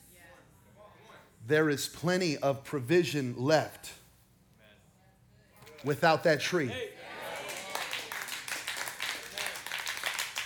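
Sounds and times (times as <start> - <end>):
speech: 1.5 - 4.0, 5.8 - 7.1
audience clapping: 7.2 - 10.4.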